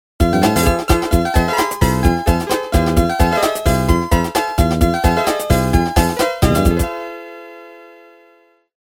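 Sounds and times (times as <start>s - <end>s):
backing track: 0.2s - 6.9s.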